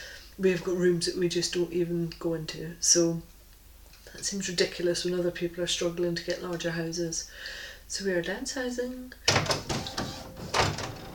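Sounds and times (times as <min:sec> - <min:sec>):
speech: 0:00.4 - 0:03.3, 0:04.1 - 0:09.7
printer printing: 0:09.3 - 0:11.1.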